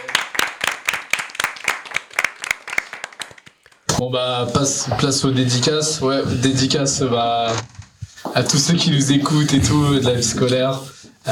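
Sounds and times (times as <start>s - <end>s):
applause: 0.0s - 3.9s
speech: 4.0s - 7.8s, 8.4s - 11.3s.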